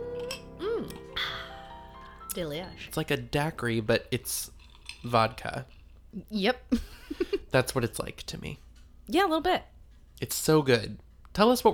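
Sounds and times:
glasses clinking in a toast: 0:00.0 - 0:01.1
speech: 0:02.4 - 0:11.7.

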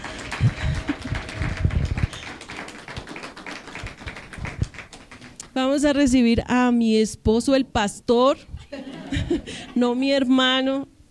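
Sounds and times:
laughter: 0:00.0 - 0:02.6, 0:08.7 - 0:09.8
audience applause: 0:00.0 - 0:05.5
speech: 0:00.4 - 0:00.7, 0:05.6 - 0:10.9.

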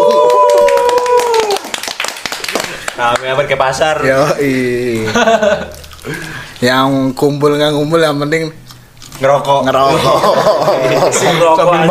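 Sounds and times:
group clapping hands: 0:00.0 - 0:03.4
speech: 0:03.0 - 0:08.6, 0:09.2 - 0:11.8
laughter: 0:05.0 - 0:05.8, 0:09.8 - 0:11.8.

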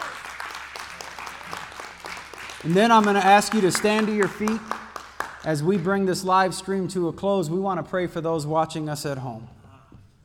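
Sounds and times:
audience hand clapping: 0:00.0 - 0:06.2
speech: 0:02.6 - 0:04.7, 0:05.4 - 0:09.6.

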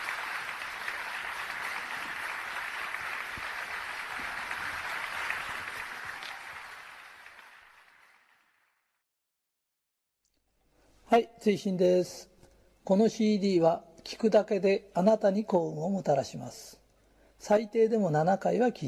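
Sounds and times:
audience applause: 0:00.0 - 0:08.9
speech: 0:11.1 - 0:12.3, 0:12.9 - 0:16.8, 0:17.4 - 0:18.8.

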